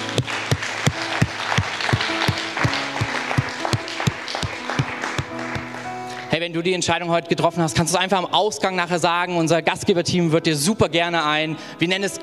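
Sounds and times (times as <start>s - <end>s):
large crowd applauding: 0.0s - 6.5s
speech: 6.4s - 12.2s.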